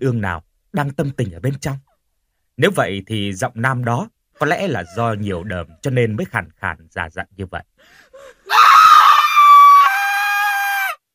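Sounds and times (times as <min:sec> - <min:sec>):
speech: 0:00.0 - 0:01.9, 0:02.6 - 0:08.8
terrified scream: 0:08.4 - 0:11.0.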